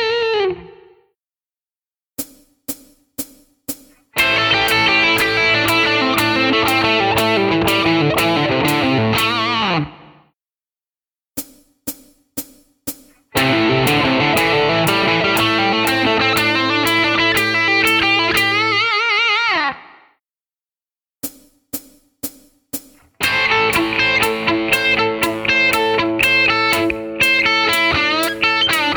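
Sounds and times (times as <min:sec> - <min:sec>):
rock guitar licks: 0:04.2 - 0:10.1, 0:13.3 - 0:20.0, 0:23.0 - 0:28.9.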